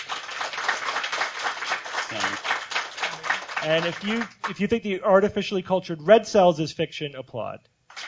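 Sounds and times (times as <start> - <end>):
audience applause: 0.0 - 4.7
speech: 2.1 - 2.5, 3.6 - 7.7.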